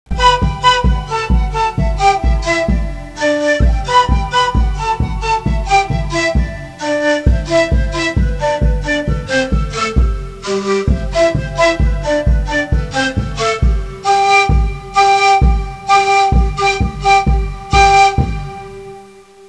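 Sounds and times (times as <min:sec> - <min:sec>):
instrumental music: 0:00.1 - 0:19.4.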